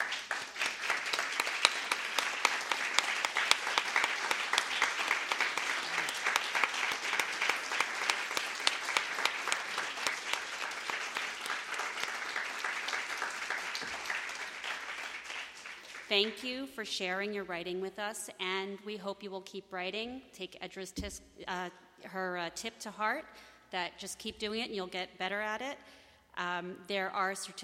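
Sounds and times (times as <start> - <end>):
audience applause: 0.0 - 16.1
speech: 16.2 - 27.6.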